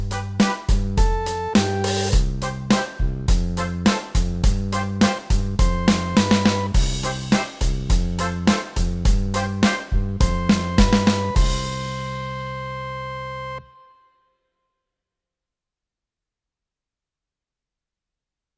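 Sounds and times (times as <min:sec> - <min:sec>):
rock music track: 0:00.0 - 0:12.3.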